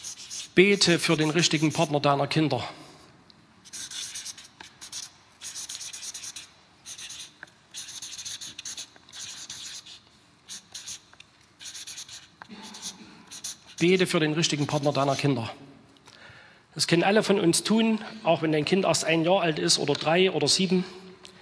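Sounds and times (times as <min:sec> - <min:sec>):
writing on a board: 0:00.0 - 0:01.9, 0:03.6 - 0:14.0
speech: 0:00.6 - 0:02.8, 0:13.8 - 0:15.6, 0:16.8 - 0:21.1.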